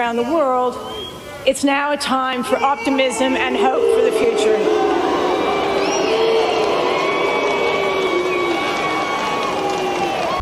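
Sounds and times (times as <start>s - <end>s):
speech: 0.0s - 5.0s
whistles and shouts: 0.7s - 1.3s, 3.9s - 10.3s
large stadium crowd booing: 2.0s - 10.3s.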